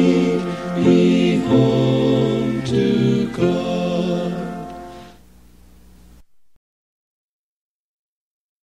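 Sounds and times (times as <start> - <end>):
hymn: 0.0 - 5.2.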